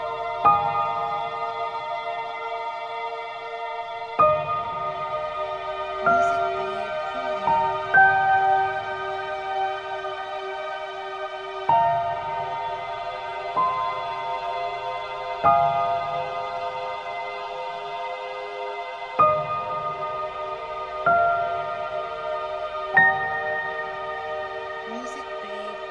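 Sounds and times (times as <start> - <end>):
warm emotional angelic strings: 0.0 - 25.8
warm emotional piano: 0.0 - 25.8.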